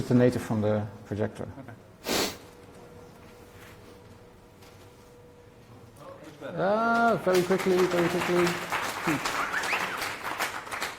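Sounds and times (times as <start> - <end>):
speech: 0.0 - 1.8, 6.5 - 9.4
audience applause: 7.0 - 10.9
faint whistle-like tones: 9.2 - 10.4.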